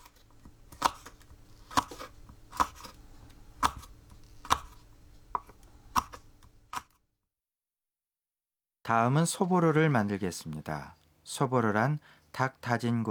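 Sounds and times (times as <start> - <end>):
knife slicing cooled green bean pods: 0.0 - 7.0
speech: 8.9 - 13.1.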